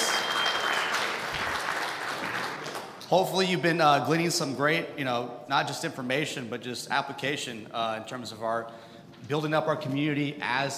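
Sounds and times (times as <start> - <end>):
audience applause: 0.0 - 3.0
speech: 3.1 - 10.7.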